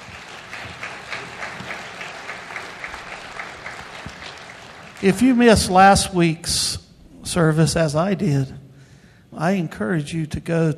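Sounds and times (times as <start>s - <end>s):
audience applause: 0.0s - 5.9s
speech: 5.0s - 8.6s, 9.4s - 10.7s.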